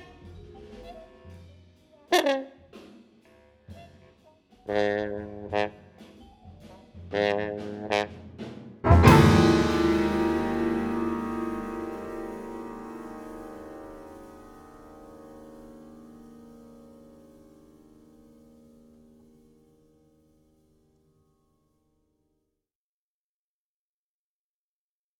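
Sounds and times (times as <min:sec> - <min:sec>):
drums playing free jazz: 0:00.0 - 0:19.3
trumpet playing free jazz: 0:01.2 - 0:02.6, 0:03.4 - 0:19.2
trombone playing free jazz: 0:03.7 - 0:06.1, 0:07.1 - 0:18.8
bass clarinet playing free jazz: 0:03.7 - 0:08.2, 0:08.9 - 0:17.5
Rhodes electric piano playing free jazz: 0:08.9 - 0:19.6.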